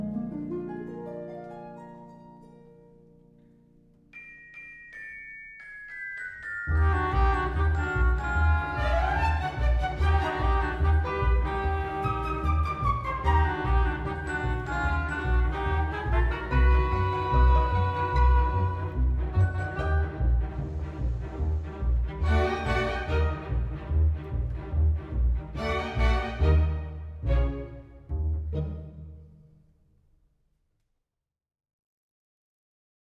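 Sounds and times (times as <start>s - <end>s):
orchestral fantasy: 4.2s - 29.8s.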